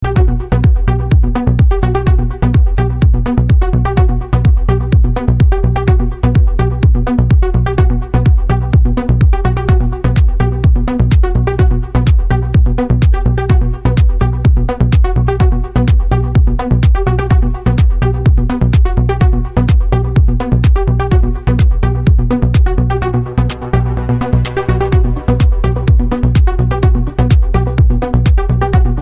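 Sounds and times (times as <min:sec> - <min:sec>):
progressive music: 0:00.0 - 0:29.0.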